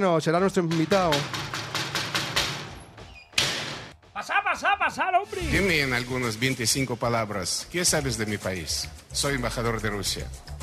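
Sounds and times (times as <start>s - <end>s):
speech: 0.0s - 1.4s, 5.0s - 10.5s
knocking on a door: 0.6s - 3.9s
laughter: 4.2s - 5.6s.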